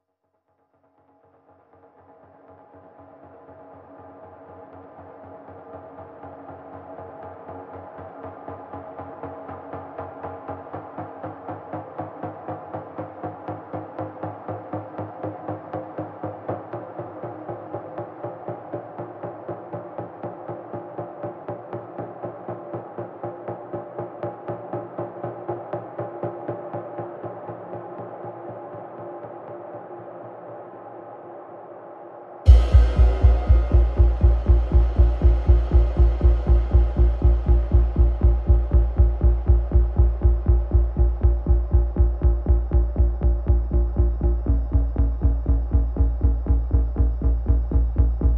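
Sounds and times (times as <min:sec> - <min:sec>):
drums: 0:32.5 - 0:48.2.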